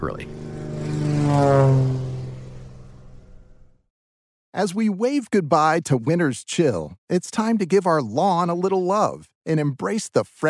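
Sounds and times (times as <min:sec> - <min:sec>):
speech: 0:00.0 - 0:00.4, 0:04.6 - 0:10.4
ultralight aircraft propeller engine: 0:00.0 - 0:03.9.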